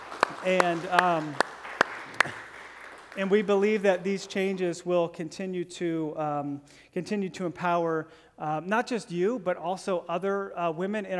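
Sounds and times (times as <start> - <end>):
audience clapping: 0.0 - 4.9
speech: 0.4 - 1.5, 3.2 - 11.1.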